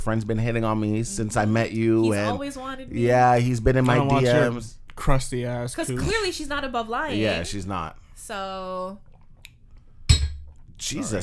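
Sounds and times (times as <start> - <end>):
speech: 0.0 - 9.1, 10.8 - 11.2
glass set down hard on a surface: 10.1 - 10.6.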